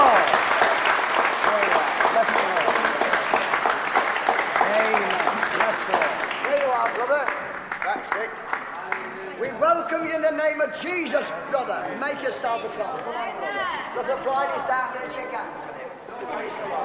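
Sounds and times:
audience applause: 0:00.0 - 0:09.6
speech: 0:10.8 - 0:16.8.

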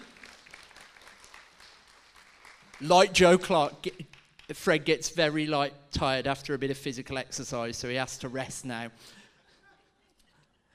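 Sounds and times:
applause: 0:00.0 - 0:04.8
speech: 0:02.8 - 0:09.2.

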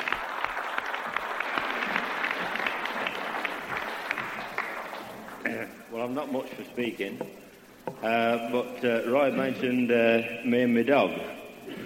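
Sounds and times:
audience clapping: 0:00.0 - 0:05.9
speech: 0:06.1 - 0:11.4.

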